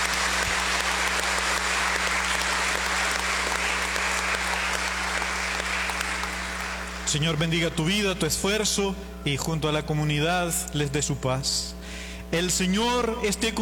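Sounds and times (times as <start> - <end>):
applause: 0.0 - 7.7
speech: 7.1 - 13.6.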